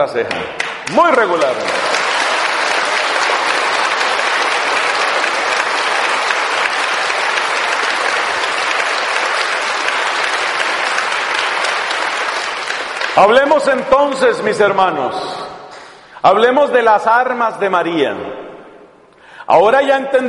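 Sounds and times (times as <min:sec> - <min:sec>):
speech: 0:00.0 - 0:02.0, 0:13.2 - 0:15.4, 0:16.2 - 0:18.4, 0:19.5 - 0:20.2
audience applause: 0:00.5 - 0:14.3.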